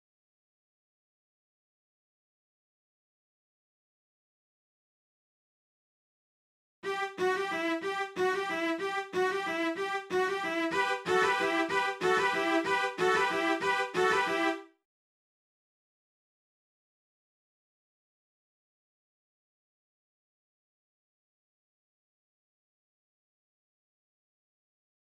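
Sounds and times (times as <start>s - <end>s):
cellos through Marshall JVM: 6.9s - 14.6s.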